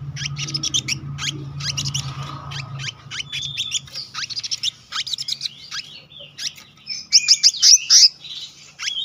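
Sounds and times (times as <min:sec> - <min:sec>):
low hum: 0:00.0 - 0:05.6
bird song of high chirps and whistles: 0:00.0 - 0:09.0.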